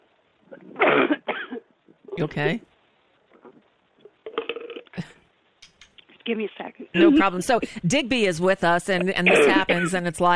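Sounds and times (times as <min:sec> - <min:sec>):
woman coughing after something went down the wrong way: 0:00.8 - 0:01.7, 0:07.0 - 0:07.3, 0:09.0 - 0:10.1
speech: 0:02.2 - 0:02.7, 0:06.3 - 0:10.3.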